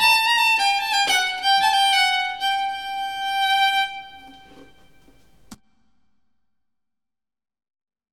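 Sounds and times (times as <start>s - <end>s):
polska folk tune from Härjedalen: 0.0s - 5.6s.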